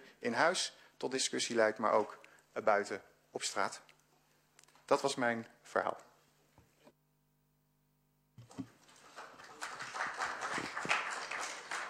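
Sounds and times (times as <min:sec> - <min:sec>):
speech: 0:00.2 - 0:03.9, 0:04.9 - 0:06.1
audience applause: 0:08.8 - 0:11.8.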